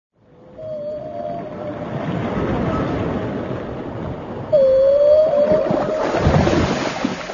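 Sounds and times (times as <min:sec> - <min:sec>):
whale call: 0:00.2 - 0:03.6, 0:04.4 - 0:06.5.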